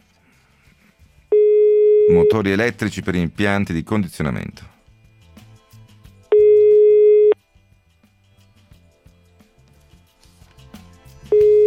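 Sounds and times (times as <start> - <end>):
telephone ringing tone of an unanswered call to Mavib: 1.3 - 2.3, 6.3 - 7.4, 11.3 - 11.6
speech: 2.1 - 4.7.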